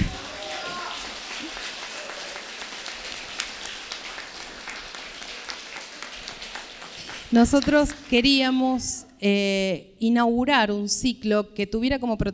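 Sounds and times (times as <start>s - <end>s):
audience applause: 0.0s - 8.3s
speech: 7.3s - 12.3s.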